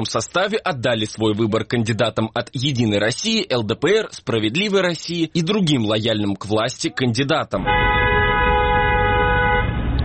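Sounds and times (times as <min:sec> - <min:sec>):
speech: 0:00.0 - 0:08.0
car horn blaring in the Khabarovsk region: 0:07.6 - 0:10.0.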